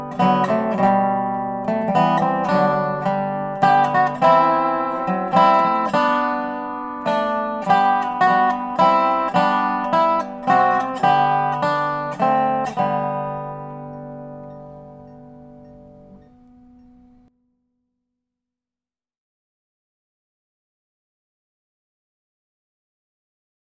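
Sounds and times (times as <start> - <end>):
dobro playing Christmas music: 0.0 - 17.3.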